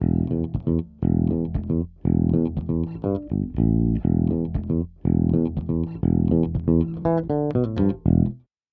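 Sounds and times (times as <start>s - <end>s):
electric bass: 0.0s - 8.5s.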